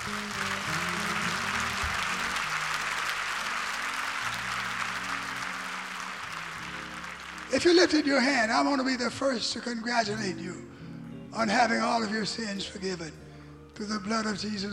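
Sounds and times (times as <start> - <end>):
organ-like tones: 0.0 - 6.3
audience clapping hands: 0.0 - 8.8
speech: 7.5 - 10.8, 11.4 - 13.2, 13.8 - 14.7.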